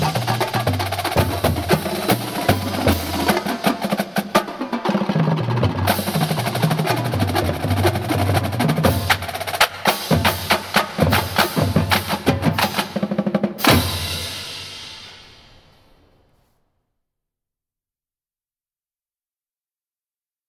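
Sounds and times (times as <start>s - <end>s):
marching band drumline: 0.0s - 14.9s.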